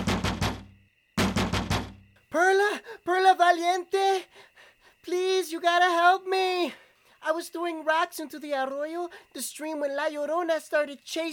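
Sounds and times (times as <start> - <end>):
banging on a clubhouse window: 0.0 - 2.1
speech: 3.6 - 4.0, 5.1 - 11.3.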